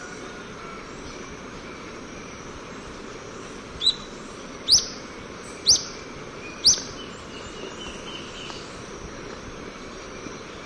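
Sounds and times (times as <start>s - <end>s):
hiss: 0.0s - 10.6s
olive-faced flatbill high calls: 3.8s - 7.0s.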